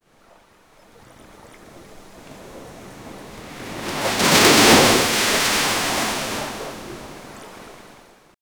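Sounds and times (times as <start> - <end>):
waves crashing against a rocky shore: 1.6 - 8.1.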